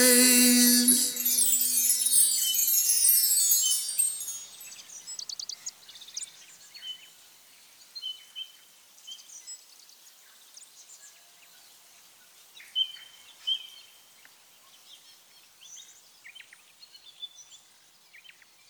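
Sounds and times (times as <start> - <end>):
lead vocals: 0.0 - 4.6.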